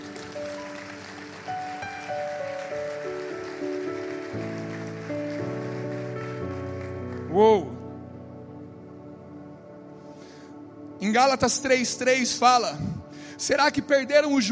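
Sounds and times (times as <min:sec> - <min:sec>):
audience applauding: 0:00.0 - 0:07.4
speech: 0:07.4 - 0:07.7, 0:11.2 - 0:14.5.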